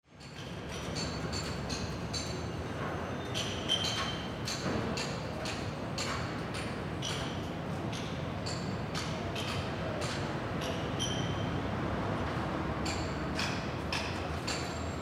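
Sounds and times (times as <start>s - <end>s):
construction noise: 0.2s - 15.0s.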